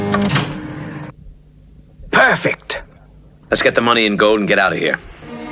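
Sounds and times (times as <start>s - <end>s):
bank vault door swinging open: 0.1s - 0.7s
speech: 2.4s - 2.8s, 3.5s - 5.1s.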